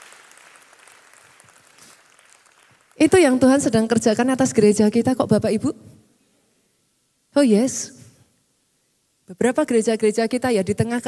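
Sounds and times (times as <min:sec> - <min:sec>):
church congregation applauding during a sermon: 0:00.0 - 0:03.6
speech: 0:03.0 - 0:06.0, 0:07.4 - 0:08.0, 0:09.3 - 0:11.0.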